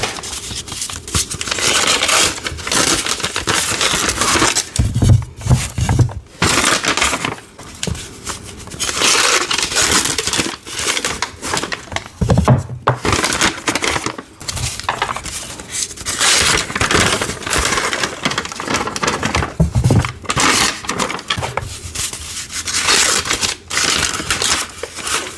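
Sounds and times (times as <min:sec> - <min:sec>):
paper unwrapped from gym chalk blocks: 0:00.0 - 0:25.3
crushing thumps of gym chalk: 0:04.6 - 0:06.5, 0:11.7 - 0:13.2, 0:18.9 - 0:20.4.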